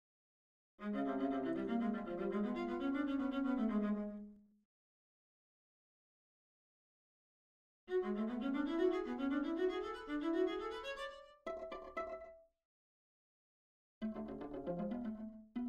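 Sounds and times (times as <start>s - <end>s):
viola playing a rondo: 0.8s - 4.2s, 7.9s - 12.4s, 14.0s - 15.6s.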